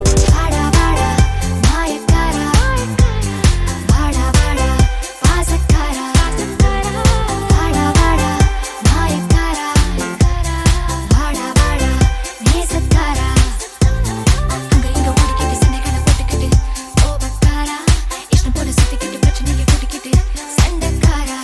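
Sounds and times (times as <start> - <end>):
background music ringtone: 0.0 - 21.4.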